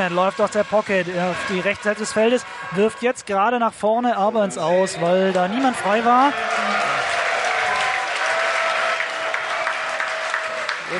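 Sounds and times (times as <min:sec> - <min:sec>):
spectators applauding at an American football game: 0:00.0 - 0:02.8, 0:05.3 - 0:10.9
speech: 0:00.0 - 0:06.8.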